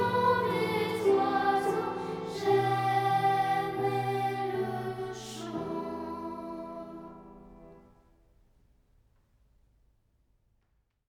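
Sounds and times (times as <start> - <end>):
chanting: 0.0 - 7.8.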